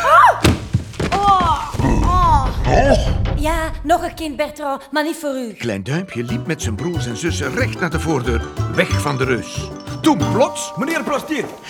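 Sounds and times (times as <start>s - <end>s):
body falling through ceiling vent hatch: 0.2s - 2.5s
speech: 3.4s - 11.6s.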